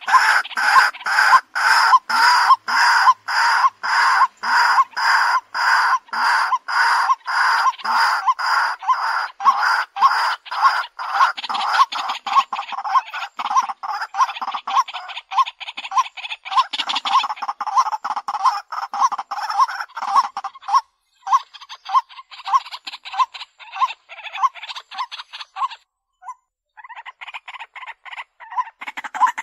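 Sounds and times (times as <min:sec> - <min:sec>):
white-breasted waterhen croaking: 0:00.0 - 0:29.4.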